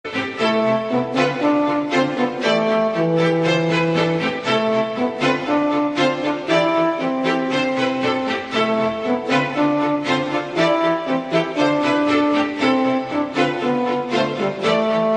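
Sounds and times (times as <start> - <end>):
violin remix: 0.0 - 15.1.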